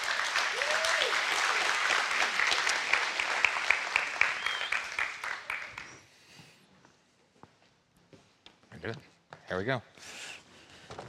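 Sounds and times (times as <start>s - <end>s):
crowd clapping: 0.0s - 6.1s
cheers and whoops: 0.4s - 2.0s
speech: 8.9s - 10.2s.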